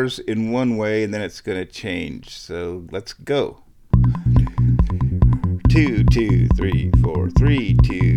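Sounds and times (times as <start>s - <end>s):
speech: 0.0s - 4.1s, 5.7s - 8.1s
modeling synthesizer with added modulation playing repeating harmonic notes: 4.0s - 8.1s.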